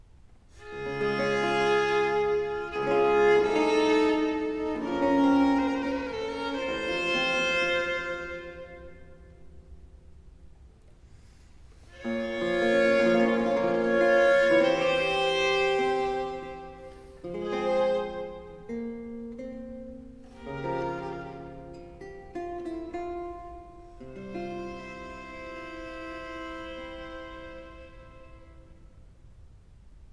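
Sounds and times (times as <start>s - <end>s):
slow classical sonata movement in G minor: 0.5s - 29.9s.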